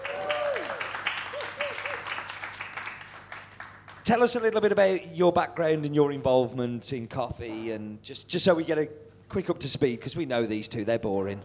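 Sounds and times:
sliding whoops: 0.0s - 2.2s
audience clapping: 0.0s - 4.2s
speech: 4.1s - 11.4s.

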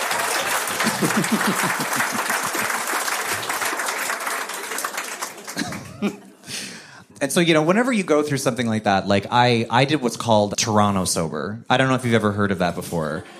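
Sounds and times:
laughter: 0.0s - 3.9s, 5.1s - 6.8s, 13.1s - 13.3s
audience applause: 0.0s - 6.3s
speech: 0.8s - 2.4s, 6.0s - 6.3s, 7.2s - 13.3s.

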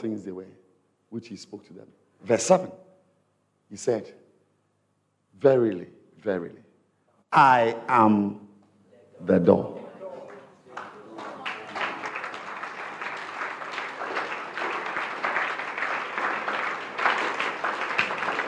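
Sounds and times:
speech: 0.0s - 2.9s, 3.7s - 4.2s, 5.4s - 6.6s, 7.3s - 8.4s, 9.2s - 9.8s
congregation clapping in a church during a sermon: 9.8s - 18.4s.

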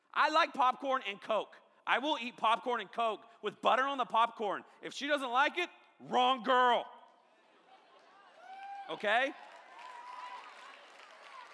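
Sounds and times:
speech: 0.2s - 7.0s, 8.9s - 9.5s
crowd clapping and cheering: 7.7s - 11.5s
whoops: 8.3s - 9.0s, 9.6s - 11.5s.

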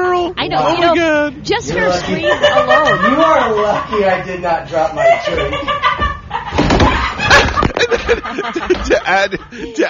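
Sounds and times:
speech: 0.5s - 5.8s, 7.8s - 9.8s
laughter: 1.8s - 9.8s
wooden bench breaking under someone sitting down: 6.5s - 7.9s.

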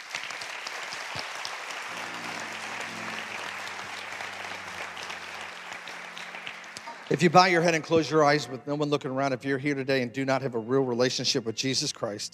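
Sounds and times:
audience applause: 0.0s - 8.4s
low organ-like tone: 1.9s - 12.3s
speech: 7.1s - 12.3s.

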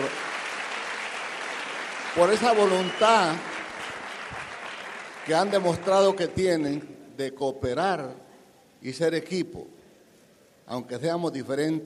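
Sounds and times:
audience applause: 0.0s - 6.4s
speech: 2.2s - 3.5s, 5.3s - 8.2s, 8.8s - 9.8s, 10.7s - 11.8s.

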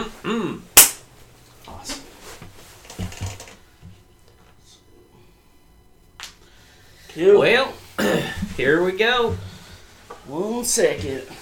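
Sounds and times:
single sharp loud hand clap: 0.8s - 1.0s
speech: 7.2s - 9.4s, 10.3s - 11.4s.

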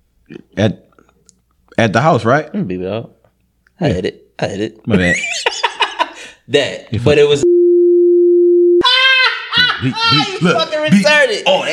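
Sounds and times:
speech: 0.3s - 0.8s, 1.8s - 3.2s, 3.8s - 5.6s, 6.5s - 7.4s, 9.8s - 11.7s
electronic beep tone: 7.4s - 8.8s
laughter: 9.4s - 11.2s.

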